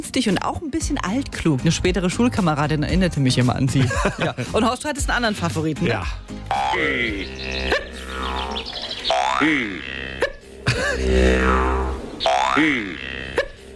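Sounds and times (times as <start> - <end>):
speech: 0.0 - 8.8, 9.4 - 10.0, 11.0 - 13.1
laughter: 3.7 - 4.7, 10.6 - 11.3
steady low drone: 6.4 - 13.7
jaw harp twanging: 6.5 - 10.3, 11.1 - 13.4.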